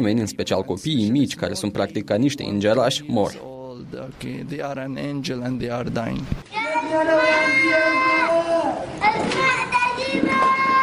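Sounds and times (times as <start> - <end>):
speech: 0.0 - 8.1
murmur of voices: 0.0 - 10.8
children crying out in city streets: 6.5 - 10.8.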